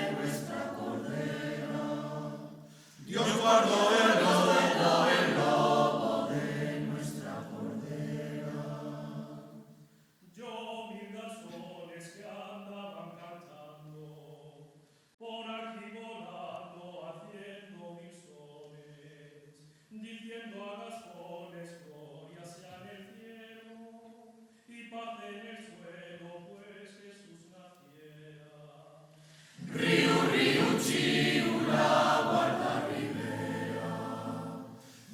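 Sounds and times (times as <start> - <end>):
polyphonic choir singing: 0.0 - 9.9, 29.5 - 35.1.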